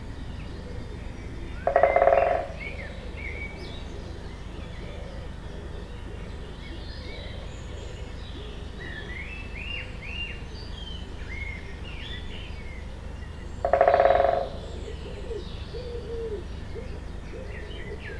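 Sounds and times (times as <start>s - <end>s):
woodpecker drumming: 1.6s - 3.0s, 13.0s - 16.4s.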